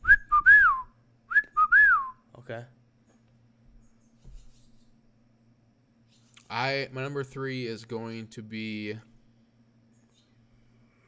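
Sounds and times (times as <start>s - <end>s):
person whistling whippoorwill call imitation: 0.0s - 2.2s
speech: 2.5s - 2.8s, 6.5s - 9.1s.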